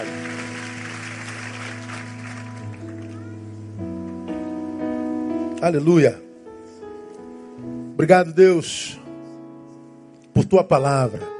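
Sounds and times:
audience applauding: 0.0s - 3.4s
speech: 5.6s - 6.3s, 8.0s - 9.0s, 10.4s - 11.3s.

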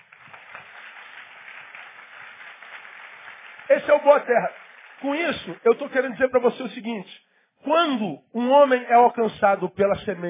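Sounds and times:
audience applause: 0.0s - 6.2s
speech: 3.7s - 10.2s.

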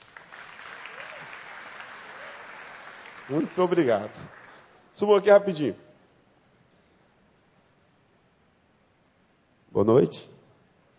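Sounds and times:
audience applause: 0.0s - 4.8s
speech: 3.3s - 4.4s, 5.0s - 5.8s, 9.8s - 10.3s.

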